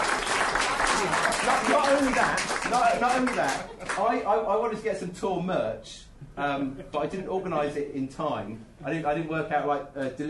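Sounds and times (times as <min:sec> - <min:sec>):
audience applause: 0:00.0 - 0:04.1
speech: 0:01.9 - 0:10.2.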